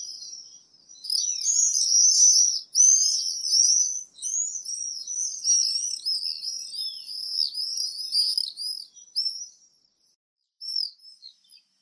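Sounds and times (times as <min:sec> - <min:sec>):
common swift twittering screams: 0:00.0 - 0:09.4.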